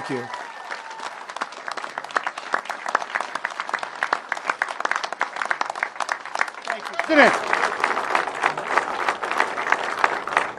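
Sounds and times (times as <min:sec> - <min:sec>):
audience applause: 0:00.0 - 0:10.5
speech: 0:00.1 - 0:00.4, 0:07.1 - 0:07.6.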